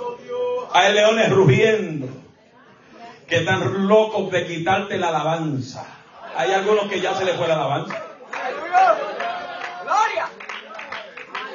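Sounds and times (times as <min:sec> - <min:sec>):
speech: 0:00.7 - 0:02.2, 0:03.3 - 0:08.1
audience applauding: 0:07.8 - 0:11.5
excited voices shouting: 0:08.3 - 0:10.4.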